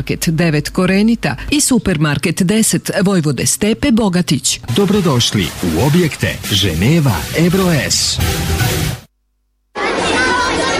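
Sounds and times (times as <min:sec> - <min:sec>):
speech: 0:00.0 - 0:09.0
children chattering in overlapping babble: 0:09.8 - 0:10.7.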